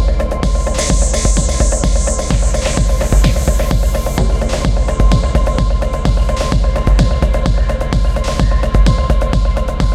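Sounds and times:
steady low hum in a garden: 0.0s - 9.8s
bright hiss: 0.5s - 6.5s.

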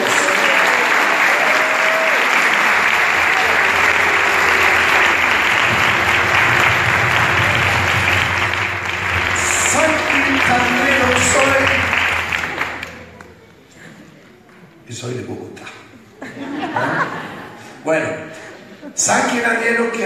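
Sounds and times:
audience applause: 0.0s - 14.0s
laughter: 15.9s - 19.4s.

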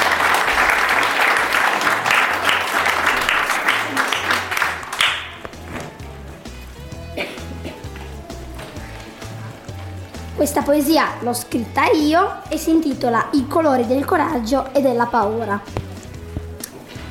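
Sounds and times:
audience applause in a school classroom: 0.0s - 5.4s
speech: 10.4s - 15.8s.

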